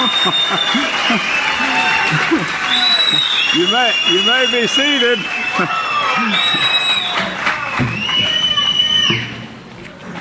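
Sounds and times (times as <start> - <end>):
laughter: 0.0 - 7.4
crowd applauding and cheering: 0.0 - 9.5
speech: 3.7 - 6.7.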